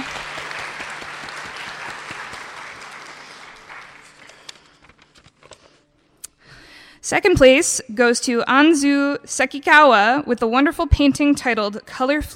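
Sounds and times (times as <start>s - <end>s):
audience applause: 0.0s - 5.0s
speech: 7.1s - 12.3s.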